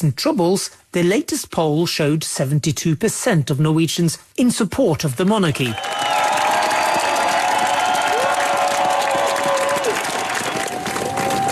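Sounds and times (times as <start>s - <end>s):
speech: 0.0s - 6.2s
crowd cheering and applauding the royal family at the palace in Oslo: 5.6s - 11.5s.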